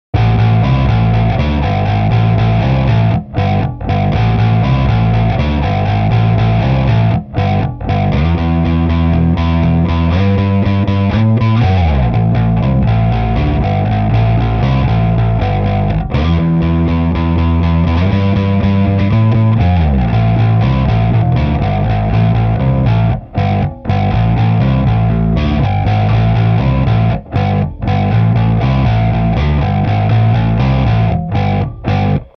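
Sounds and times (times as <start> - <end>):
bass: 0.1 - 32.3.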